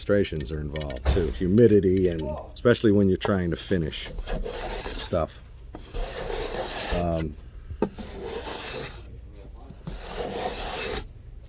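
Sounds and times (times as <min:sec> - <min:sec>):
speech: 0:00.0 - 0:05.4, 0:07.0 - 0:08.0
hand plane shaving wood: 0:04.0 - 0:05.2, 0:05.8 - 0:09.0, 0:09.8 - 0:11.1.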